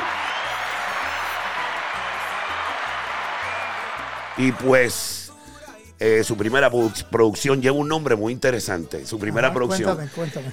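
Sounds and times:
applause: 0.0s - 5.0s
speech: 4.4s - 5.2s, 6.0s - 10.5s.

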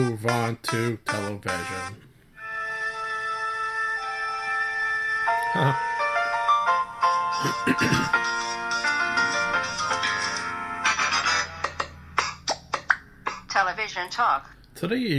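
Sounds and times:
speech: 0.0s - 2.1s, 5.5s - 5.9s, 7.4s - 8.5s, 13.6s - 15.1s
sitcom theme tune: 0.0s - 12.7s.

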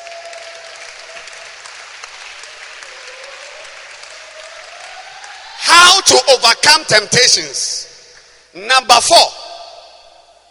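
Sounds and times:
audience clapping hands for a pastor: 0.0s - 7.4s
speech: 6.0s - 7.8s, 8.6s - 9.4s.

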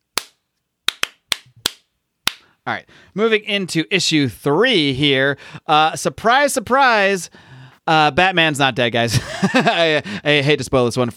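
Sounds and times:
hand claps from one person: 0.2s - 2.5s
speech: 2.6s - 11.1s.

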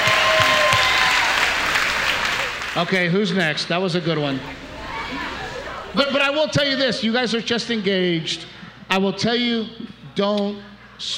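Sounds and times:
audience applause: 0.0s - 3.2s, 4.2s - 6.3s
faint murmur of voices: 1.5s - 11.1s
speech: 2.8s - 5.3s, 6.0s - 11.1s.

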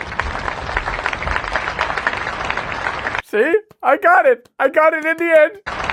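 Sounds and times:
audience clapping: 0.0s - 5.9s
speech: 3.3s - 5.8s.

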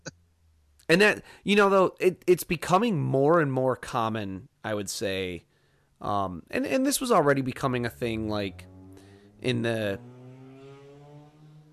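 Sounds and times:
speech: 0.9s - 8.7s, 9.4s - 10.1s
car driving by: 7.2s - 11.7s.

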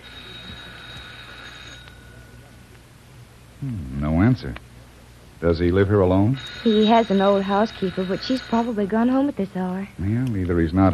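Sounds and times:
doorbell ringing: 0.0s - 2.3s, 6.4s - 9.2s
low steady hum: 0.0s - 10.9s
speech: 3.6s - 4.7s, 5.4s - 10.9s.

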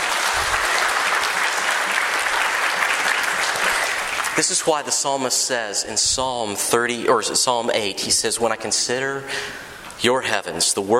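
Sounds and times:
audience applause: 0.0s - 4.8s
speech: 4.4s - 10.9s.

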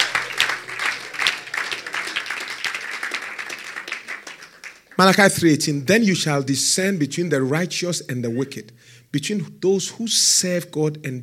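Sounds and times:
audience clapping: 0.0s - 5.4s
speech: 5.0s - 11.2s.

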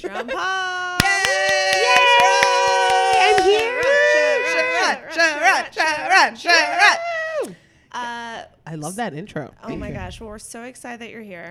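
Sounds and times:
speech: 0.0s - 2.1s, 5.1s - 11.5s
hands clapping: 1.0s - 4.7s.

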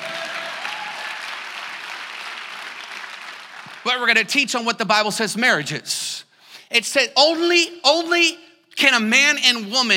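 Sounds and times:
church congregation applauding: 0.0s - 4.2s
speech: 3.8s - 9.9s.

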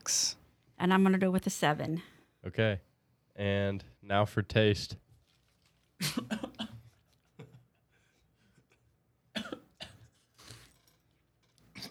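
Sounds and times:
speech: 0.8s - 5.0s
harsh raspy coughs after swallowing a crumb: 6.0s - 7.6s, 9.3s - 10.2s.

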